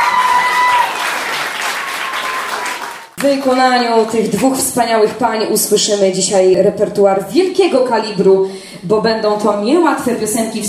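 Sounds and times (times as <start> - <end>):
audience applause: 0.0 - 3.2
speech: 3.2 - 10.6.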